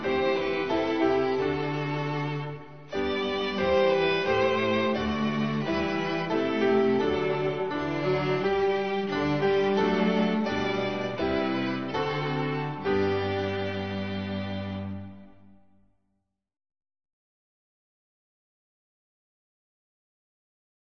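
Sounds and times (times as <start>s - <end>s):
hymn instrumental: 0.0s - 15.7s.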